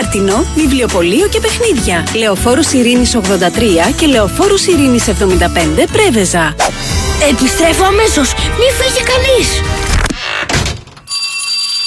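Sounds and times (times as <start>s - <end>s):
speech: 0.1s - 10.0s
school bell ringing for the first day of the school year: 11.1s - 11.8s.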